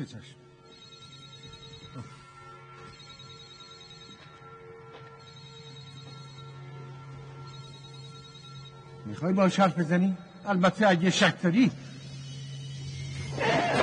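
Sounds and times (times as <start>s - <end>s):
speech: 0.0s - 0.4s, 2.0s - 2.2s, 9.1s - 11.9s
telephone electronic ringtone: 0.6s - 9.2s.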